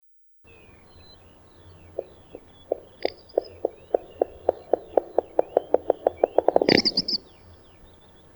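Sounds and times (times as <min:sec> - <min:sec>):
little bustard calling with clicking pulses: 0:00.5 - 0:08.2.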